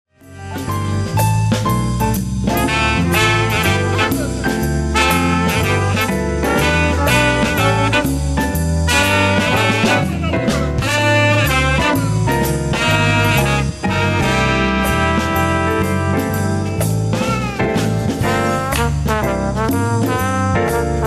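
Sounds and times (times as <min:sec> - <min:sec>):
small group big band playing: 0:00.1 - 0:21.0.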